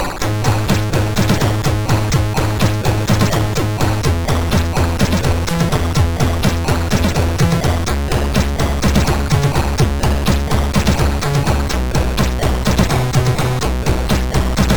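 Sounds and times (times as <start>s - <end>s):
chiptune on MOS6581R4 SID chip: 0.2s - 14.7s.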